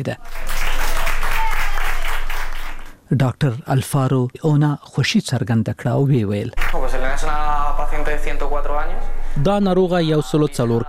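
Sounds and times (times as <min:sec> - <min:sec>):
speech: 0:00.0 - 0:00.5, 0:03.1 - 0:10.8
doctors and nurses in Madrid clapping for a recovered coronavirus patient: 0:00.0 - 0:03.0, 0:06.6 - 0:06.9.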